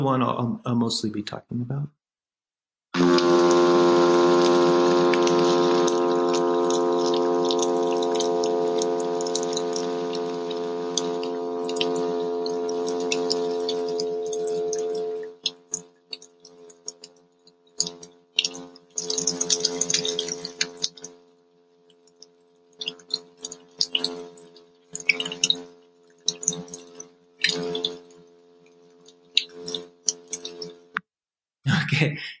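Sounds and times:
speech: 0.0 - 2.0, 2.9 - 3.5
hum of the midshipman fish: 3.0 - 17.2, 17.8 - 21.3, 22.7 - 30.7.

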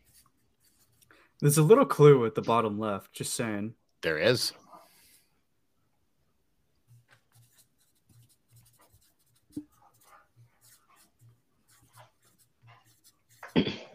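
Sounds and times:
pens scratching on paper as people write answers: 0.0 - 1.1, 6.8 - 13.6
speech: 1.4 - 4.6.

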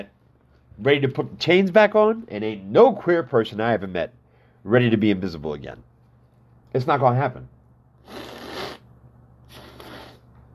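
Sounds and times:
speech: 0.8 - 5.9, 6.7 - 8.4
nasal spray being used: 9.5 - 10.3.

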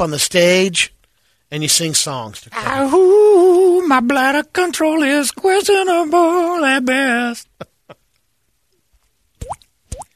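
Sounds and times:
speech: 0.0 - 7.5
water dripping: 9.4 - 10.1.

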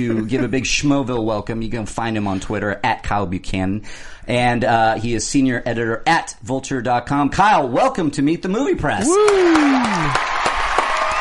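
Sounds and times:
speech: 0.0 - 10.4
crowd applause and cheering: 9.0 - 11.1.

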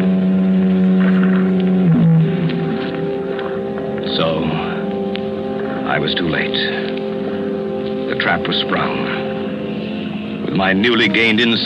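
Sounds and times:
foghorn blowing: 0.0 - 11.6
speech: 6.0 - 7.0, 8.2 - 9.2, 10.5 - 11.6.

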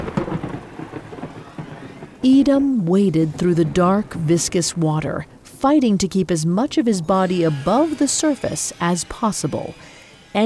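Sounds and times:
low rolling thunder: 0.0 - 5.5
heavy rain: 0.0 - 5.6
speech: 2.2 - 10.4.

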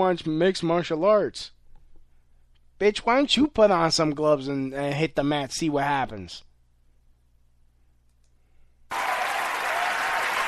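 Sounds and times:
speech: 0.0 - 1.6, 2.8 - 6.5
audience clapping: 8.9 - 10.4.

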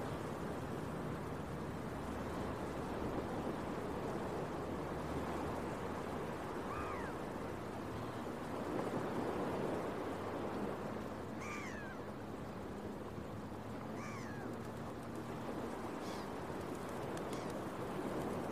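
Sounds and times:
ocean waves: 0.0 - 18.4
gull cries: 11.3 - 12.2, 13.8 - 14.7.

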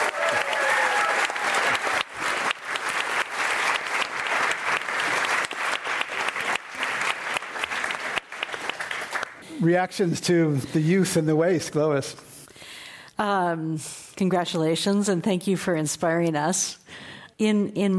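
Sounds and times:
audience applause for a guest: 0.0 - 9.5
speech: 9.6 - 12.3, 13.2 - 17.9.

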